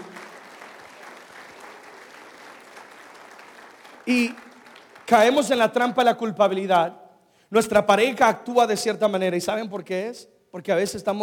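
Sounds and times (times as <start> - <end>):
audience applause: 0.0 - 5.5
speech: 4.0 - 4.5, 5.1 - 11.2.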